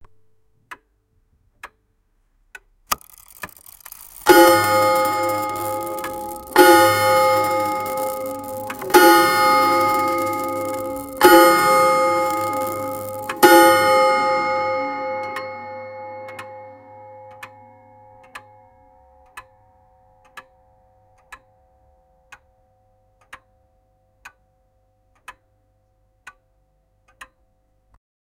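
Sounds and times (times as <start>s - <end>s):
old timepiece ticking: 2.6s - 18.6s.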